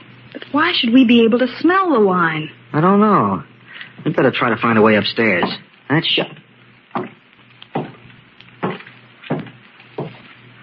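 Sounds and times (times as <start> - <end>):
speech: 0.5 - 6.4
heavy footsteps upstairs: 8.6 - 10.3.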